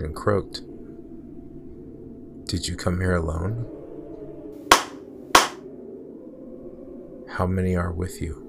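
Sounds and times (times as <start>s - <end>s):
speech: 0.0s - 0.7s, 2.5s - 3.8s, 7.4s - 8.4s
hand claps: 4.7s - 5.6s.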